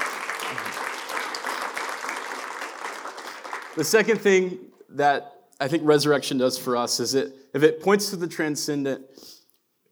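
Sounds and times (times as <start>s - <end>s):
audience applause and cheering: 0.0s - 4.4s
speech: 3.8s - 9.4s.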